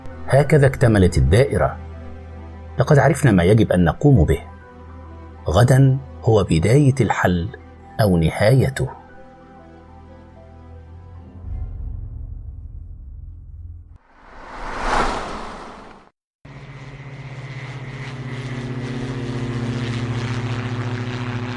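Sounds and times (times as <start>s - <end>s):
speech: 0.3s - 1.9s, 2.8s - 4.5s, 5.5s - 9.0s
airplane engine rumble: 13.0s - 21.5s
rush of air aboard an airplane: 14.1s - 16.1s
airplane propeller drone with humming tones: 14.2s - 21.5s.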